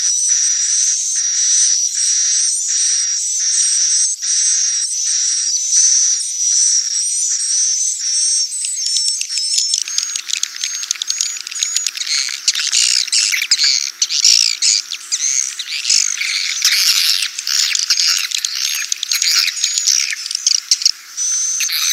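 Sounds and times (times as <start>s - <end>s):
swiftlet chirping calls: 0.2s - 21.9s.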